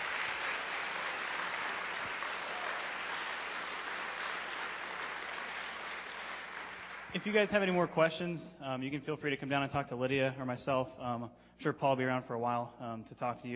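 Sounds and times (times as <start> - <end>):
round of applause: 0.0 - 8.1
speech: 7.1 - 13.5.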